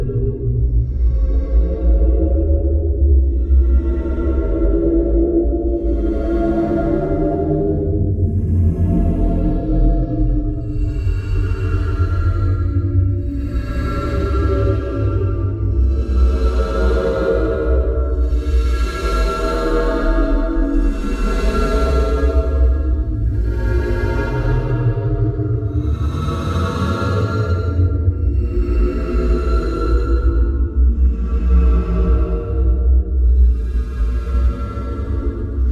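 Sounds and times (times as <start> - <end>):
droning sound: 0.0 - 35.7.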